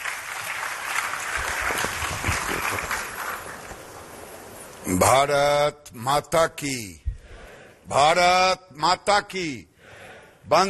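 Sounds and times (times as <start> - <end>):
audience applause: 0.0 - 4.1
speech: 4.9 - 7.0, 7.9 - 9.7, 10.5 - 10.6.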